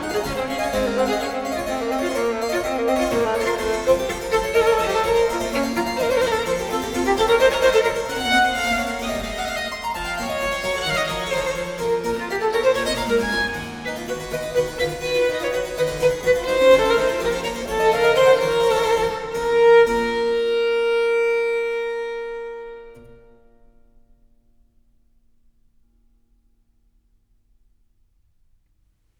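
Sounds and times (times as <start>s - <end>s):
harpsichord: 0.0s - 19.4s
violin: 0.0s - 23.7s.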